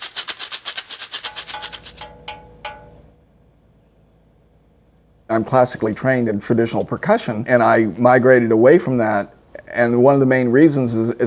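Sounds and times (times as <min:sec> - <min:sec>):
homemade shaker of a plastic toy filled with buttons, shaken: 0:00.0 - 0:03.1
speech: 0:05.3 - 0:11.2.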